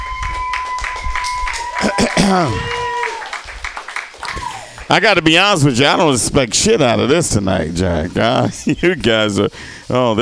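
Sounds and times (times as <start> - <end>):
audience applauding: 0.0 - 6.2
speech: 2.2 - 2.7, 4.9 - 10.2.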